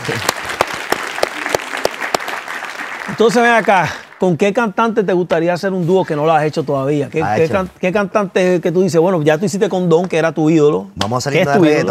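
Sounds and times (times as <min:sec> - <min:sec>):
applause: 0:00.0 - 0:04.2
speech: 0:03.1 - 0:11.9.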